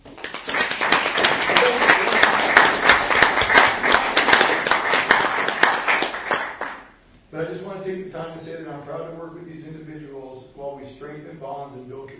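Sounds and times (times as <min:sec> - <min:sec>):
round of applause: 0:00.0 - 0:06.9.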